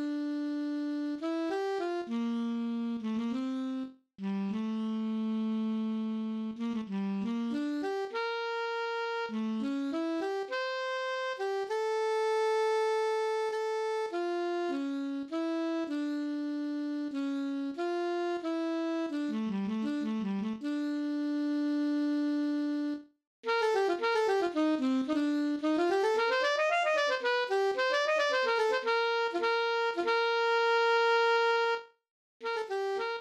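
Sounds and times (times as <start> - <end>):
alto saxophone: 0.0 - 33.2.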